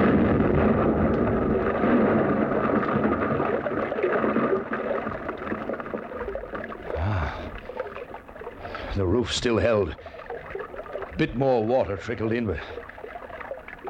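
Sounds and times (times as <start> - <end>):
explosion of a blasting charge in tunnel: 0.0 - 5.8
speech: 9.2 - 10.2, 11.2 - 12.8.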